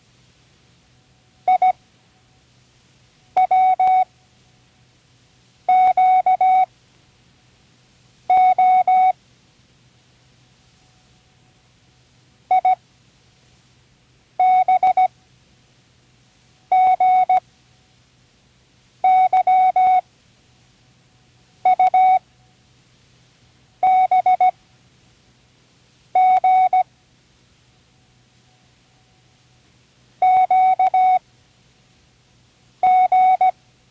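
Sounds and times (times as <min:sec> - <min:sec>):
morse code of random letters: 0:01.5 - 0:01.8, 0:03.4 - 0:04.1, 0:05.7 - 0:06.7, 0:08.3 - 0:09.2, 0:14.4 - 0:15.1, 0:16.7 - 0:17.4, 0:19.1 - 0:20.0, 0:21.7 - 0:22.2, 0:23.8 - 0:24.6, 0:26.1 - 0:26.8, 0:30.2 - 0:31.2, 0:32.8 - 0:33.5.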